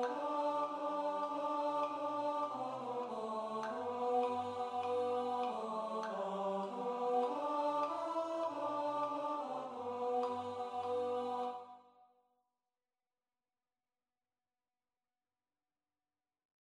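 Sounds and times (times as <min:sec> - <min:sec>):
tenor singing: 0:00.0 - 0:11.7.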